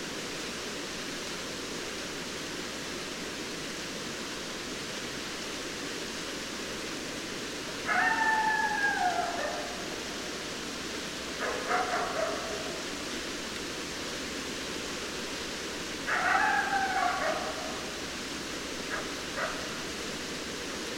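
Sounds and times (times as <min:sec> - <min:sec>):
steady hiss: 0:00.0 - 0:20.9
coyote howling: 0:07.8 - 0:10.2, 0:11.4 - 0:12.9, 0:16.0 - 0:18.0.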